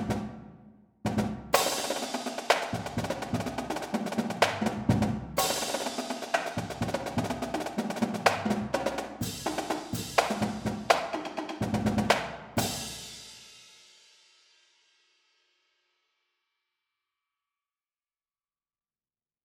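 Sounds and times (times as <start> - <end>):
drumline cadence: 1.1 - 13.1.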